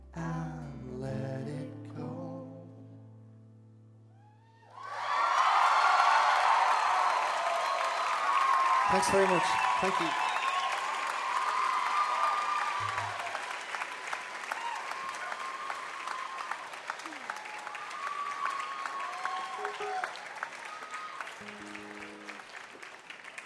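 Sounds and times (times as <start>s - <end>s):
whoops and cheers: 4.2s - 21.7s
large audience applauding: 4.7s - 23.4s
speech: 9.0s - 10.2s.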